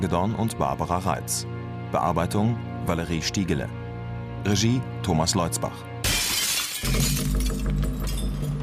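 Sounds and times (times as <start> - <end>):
speech: 0.0 - 3.8, 4.4 - 5.9, 6.8 - 7.6
window pane being smashed: 6.0 - 8.5.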